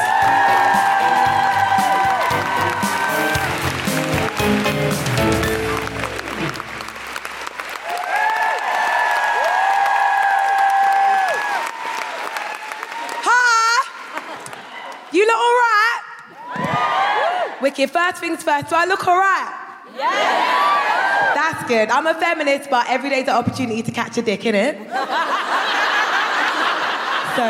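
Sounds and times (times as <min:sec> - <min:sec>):
upbeat walk-on music: 0:00.0 - 0:07.4
large audience applause and cheering: 0:00.0 - 0:15.2, 0:16.3 - 0:17.6, 0:20.0 - 0:21.4
laughter: 0:13.9 - 0:14.8, 0:24.9 - 0:27.4
speech: 0:17.8 - 0:20.3, 0:21.5 - 0:25.3.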